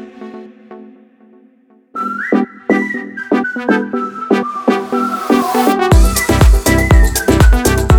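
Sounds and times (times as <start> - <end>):
whistled song: 1.9 - 7.9.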